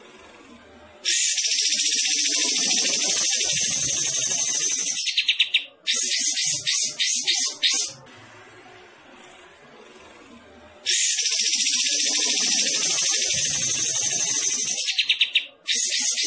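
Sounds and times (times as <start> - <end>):
bulbul singing rapid bright chattering notes: 1.1 - 8.0, 10.9 - 16.2.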